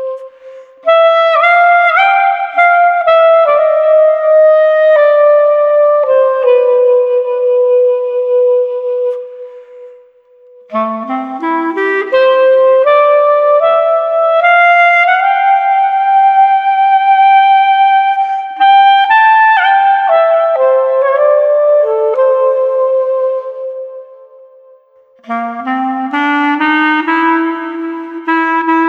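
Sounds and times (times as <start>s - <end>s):
airy street clarinet: 0.0s - 28.8s.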